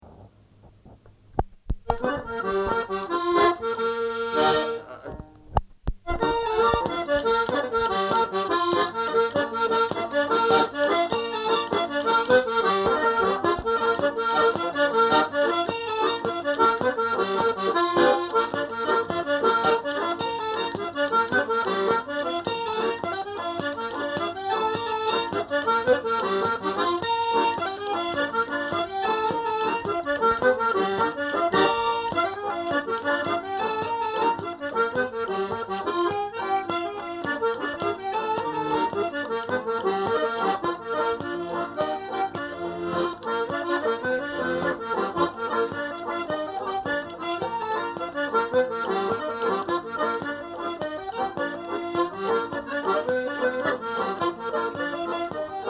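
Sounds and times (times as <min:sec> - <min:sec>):
jig tunes: 0:00.0 - 0:55.6.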